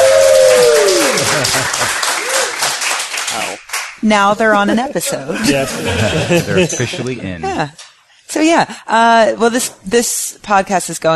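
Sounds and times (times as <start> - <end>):
live podcast audience applauding and cheering: 0.0 - 4.0
laughter: 1.0 - 2.3, 4.4 - 7.7
speech: 4.0 - 11.1.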